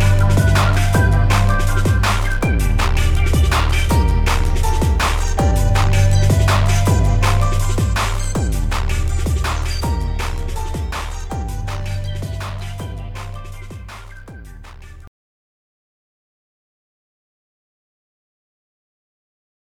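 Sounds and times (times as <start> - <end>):
transit synth pads: 0.0 - 15.0.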